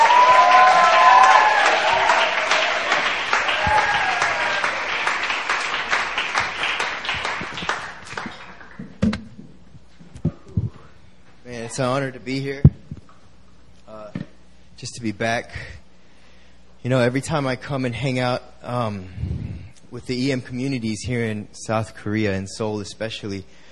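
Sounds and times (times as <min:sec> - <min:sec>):
audience applause welcoming a speaker at a joint prayer meeting: 0:00.0 - 0:08.8
speech: 0:11.8 - 0:12.8, 0:14.8 - 0:15.8, 0:16.8 - 0:23.7.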